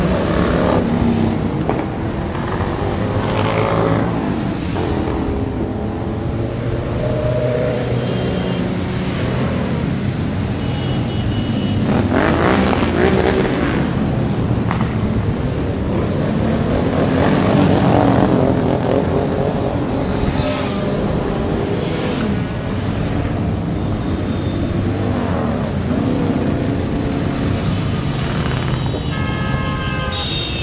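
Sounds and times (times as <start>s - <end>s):
column of motorcycles rumbling on Okeansky Prospekt in Vladivostok: 0.0s - 30.6s.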